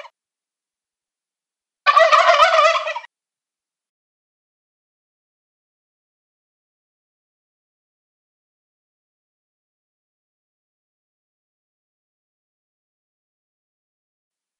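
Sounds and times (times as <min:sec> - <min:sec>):
male turkeys gobbling: 0:01.9 - 0:03.1.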